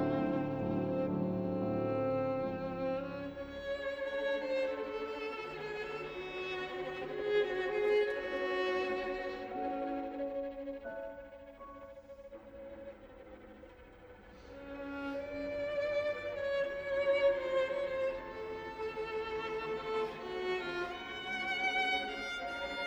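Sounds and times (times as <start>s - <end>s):
piano and string quintet: 0.0s - 22.8s.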